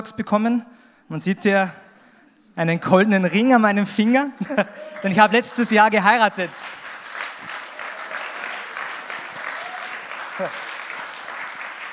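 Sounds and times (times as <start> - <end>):
speech: 0.0 - 1.8, 2.6 - 6.8, 10.4 - 10.6
laughter: 4.2 - 5.6, 10.1 - 10.9
audience applause: 4.6 - 11.9.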